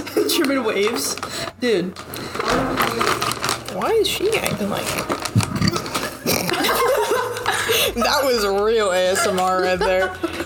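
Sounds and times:
speech: 0.3s - 3.2s, 3.8s - 5.4s, 7.9s - 10.4s
person imitating a burp: 5.5s - 6.8s
laughter: 5.8s - 10.4s.

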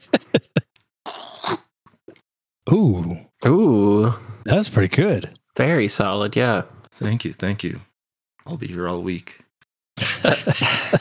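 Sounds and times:
laughter: 0.0s - 0.7s, 10.0s - 10.9s
voice imitating a frog being eaten: 1.1s - 1.7s
speech: 2.7s - 7.9s, 8.5s - 9.4s, 10.0s - 10.9s.

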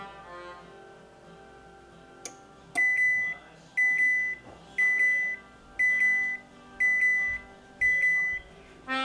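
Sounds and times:
faint low hum: 0.1s - 8.9s
appliance high beeps while cooking a frozen pizza: 2.8s - 8.5s.

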